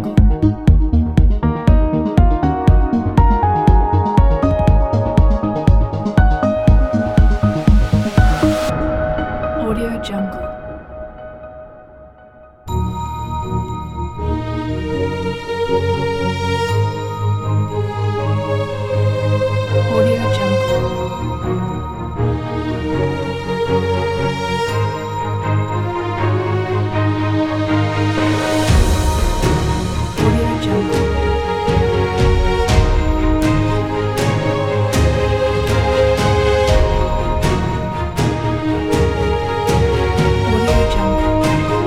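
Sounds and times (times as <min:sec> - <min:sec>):
corporate inspirational music: 0:00.0 - 0:41.8.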